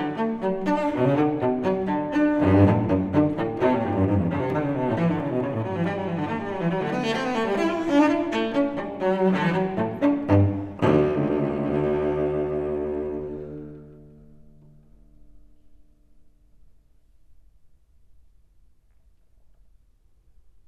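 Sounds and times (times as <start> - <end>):
solo cello suite in D major: 0.0 - 15.8.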